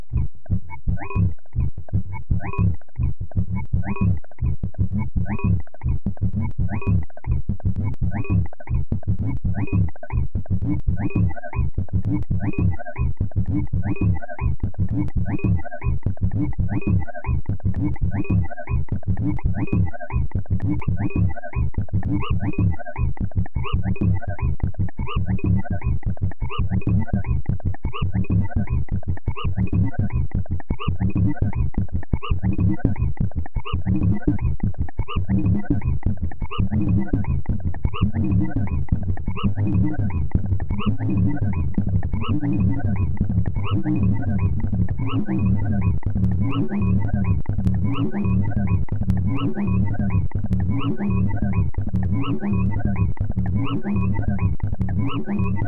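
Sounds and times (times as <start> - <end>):
techno sine synth: 0.0 - 55.6.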